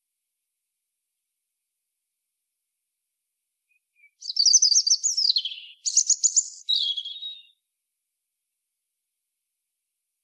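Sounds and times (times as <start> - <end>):
European robin singing: 3.7 - 7.6.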